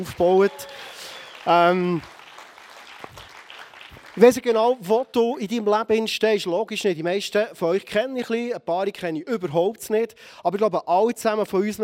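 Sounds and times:
speech: 0:00.0 - 0:02.2, 0:04.2 - 0:11.8
audience applause: 0:00.0 - 0:04.8.

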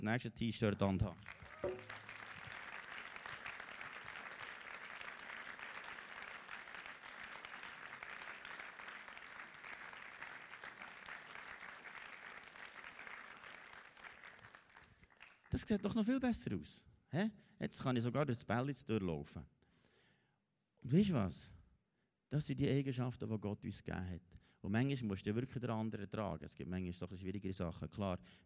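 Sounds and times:
speech: 0:00.0 - 0:01.8, 0:15.6 - 0:19.6, 0:20.8 - 0:21.6, 0:22.3 - 0:28.4
crowd applause: 0:01.3 - 0:15.4.

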